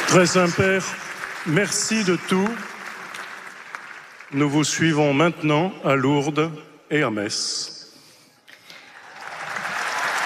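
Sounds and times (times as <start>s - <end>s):
crowd applause at a papal event: 0.0s - 4.6s, 8.7s - 10.2s
speech: 0.1s - 2.7s, 4.3s - 7.8s.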